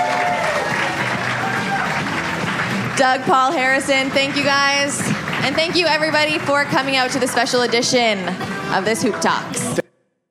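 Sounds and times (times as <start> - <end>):
audience cheering at a live basketball talk event: 0.0 - 2.8
audience clapping at a live basketball talk event: 0.0 - 8.9
speech: 3.0 - 9.8.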